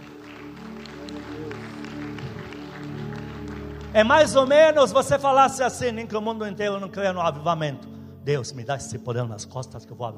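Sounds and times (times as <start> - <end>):
audience applause: 0.0 - 4.8
low musical drone: 0.0 - 10.1
speech: 3.9 - 10.1.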